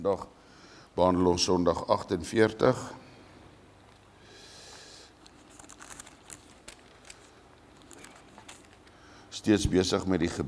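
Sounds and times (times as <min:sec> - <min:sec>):
speech: 0:00.0 - 0:00.4, 0:01.0 - 0:03.0, 0:09.4 - 0:10.4
pages of a Heidelberg Catechism book being opened and handled: 0:04.7 - 0:09.1.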